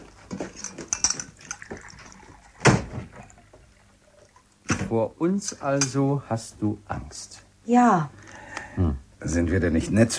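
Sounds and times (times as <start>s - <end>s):
dishes clinking: 0.3s - 3.4s, 4.7s - 6.1s
tea being poured: 0.4s - 4.8s
speech: 4.9s - 8.2s, 8.8s - 10.1s.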